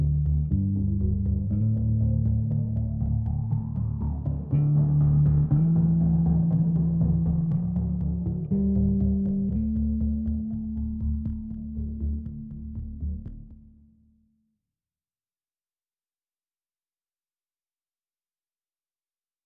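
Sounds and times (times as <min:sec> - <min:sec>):
double basses: 0:00.0 - 0:13.8.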